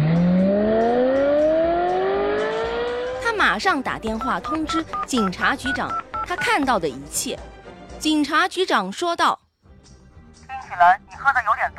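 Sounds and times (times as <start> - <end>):
getaway car engine revving and driving off: 0.0 - 3.2
speech: 3.6 - 9.4, 10.7 - 11.7.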